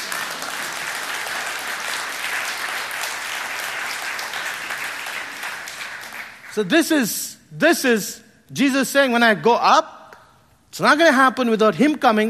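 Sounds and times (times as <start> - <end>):
audience clapping: 0.0 - 6.7
speech: 6.6 - 10.0, 10.7 - 12.2.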